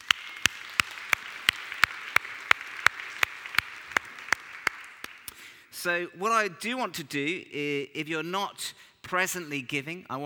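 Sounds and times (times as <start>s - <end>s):
audience round of applause: 0.0s - 5.3s
speech: 5.8s - 10.2s.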